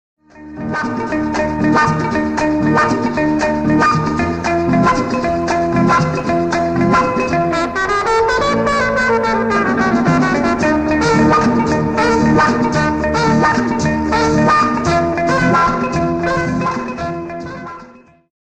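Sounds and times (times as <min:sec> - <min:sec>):
background music: 0:00.3 - 0:18.2.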